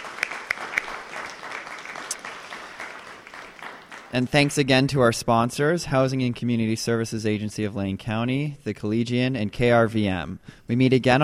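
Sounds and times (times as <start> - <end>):
audience applause: 0.0 - 4.6
speech: 4.1 - 11.2.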